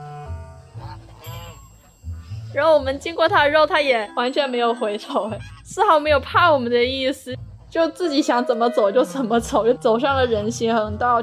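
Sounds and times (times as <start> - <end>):
geese honking: 0.0 - 2.7, 5.0 - 6.0, 8.0 - 11.2
speech: 2.5 - 11.2.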